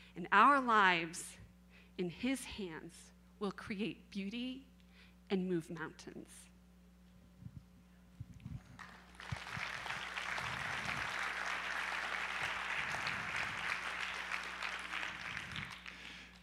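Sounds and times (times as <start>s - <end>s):
speech: 0.2s - 1.4s, 2.0s - 4.7s, 5.3s - 6.5s
audience applause: 8.8s - 16.4s.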